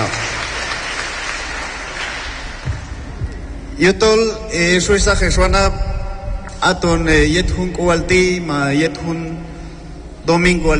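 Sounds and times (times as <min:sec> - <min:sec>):
loud audience applause: 0:00.0 - 0:03.0
low thump: 0:02.6 - 0:03.5
speech: 0:03.8 - 0:05.9, 0:06.6 - 0:09.5, 0:10.2 - 0:10.7.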